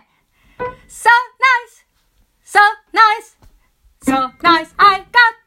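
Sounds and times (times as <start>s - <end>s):
tenor lead: 0.6s - 1.2s, 4.0s - 5.3s.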